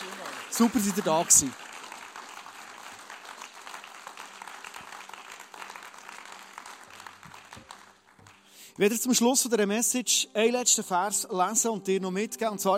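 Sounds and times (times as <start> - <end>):
audience applause: 0.0 - 8.6
speech: 0.6 - 1.6, 8.8 - 12.7.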